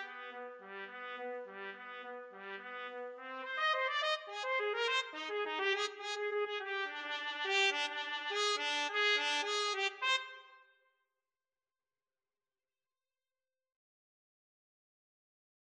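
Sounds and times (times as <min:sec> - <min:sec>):
trumpet duet: 0:00.0 - 0:10.6.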